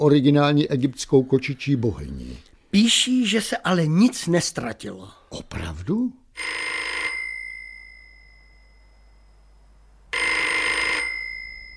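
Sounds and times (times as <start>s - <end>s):
speech: 0.0s - 6.7s
telephone bell ringing: 6.4s - 11.7s.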